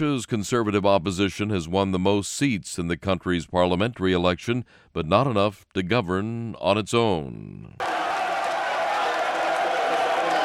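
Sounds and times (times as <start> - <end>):
speech: 0.0 - 7.9
members of the Croatian Democratic Union cheering: 7.8 - 10.4.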